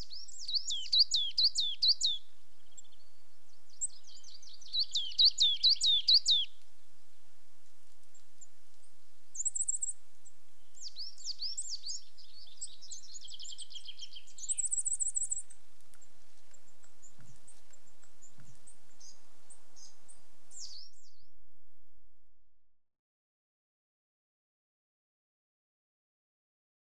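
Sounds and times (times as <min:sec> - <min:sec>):
coal tits giving high-pitched calls on a territorial boundary: 0:00.0 - 0:06.6, 0:08.0 - 0:21.3.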